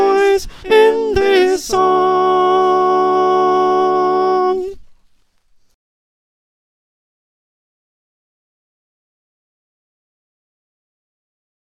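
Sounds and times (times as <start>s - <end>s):
choir with soprano: 0.0s - 4.8s.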